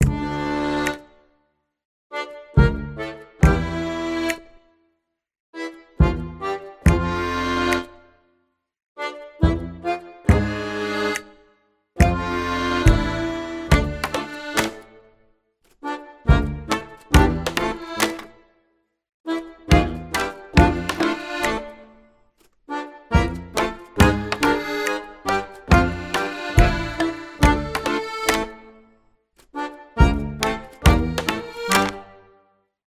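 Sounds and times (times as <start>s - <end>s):
mischievous pirate sneaking music: 2.4s - 4.4s, 5.6s - 8.0s, 9.1s - 11.3s, 12.0s - 15.0s, 15.8s - 18.3s, 19.3s - 22.0s, 22.7s - 28.8s, 29.6s - 32.2s.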